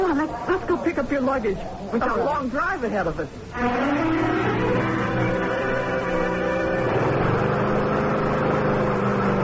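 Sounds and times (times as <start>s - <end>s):
speech: 0.1s - 5.6s
lawn mower engine running: 3.5s - 9.4s.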